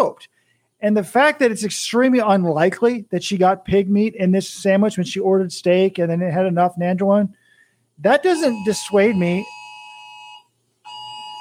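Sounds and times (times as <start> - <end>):
speech: 0.0 - 7.4, 8.0 - 9.6
tornado warning siren blaring: 8.3 - 11.3.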